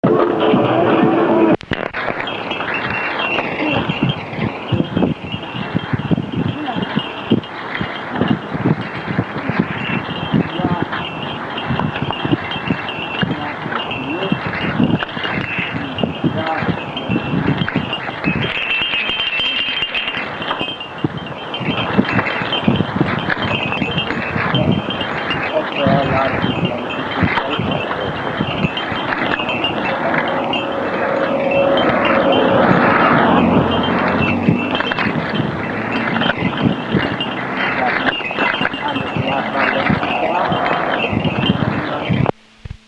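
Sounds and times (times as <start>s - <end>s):
street ambience at a shrine in Mexico: 0.0s - 42.8s.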